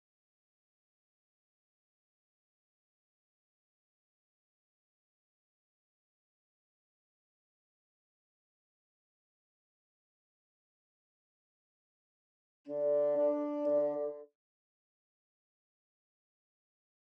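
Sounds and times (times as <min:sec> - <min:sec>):
bassoon: 0:12.7 - 0:14.3.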